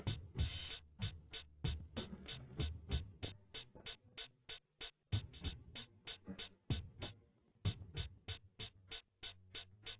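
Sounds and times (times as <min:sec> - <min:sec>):
instrumental with drums: 0:00.0 - 0:09.9.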